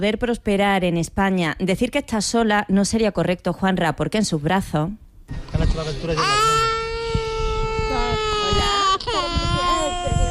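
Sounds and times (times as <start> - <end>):
speech: 0.0 - 6.6
toddler nearly two years old crying: 6.2 - 10.2.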